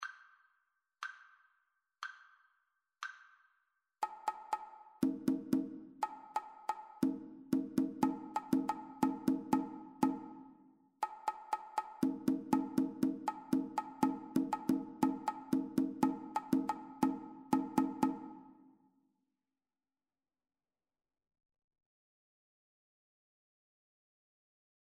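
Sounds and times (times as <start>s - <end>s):
two-part rhythm: 4.0s - 18.6s.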